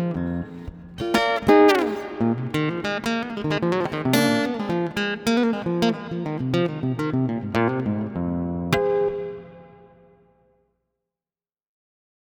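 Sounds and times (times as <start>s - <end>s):
guitar playing: 0.0s - 10.4s.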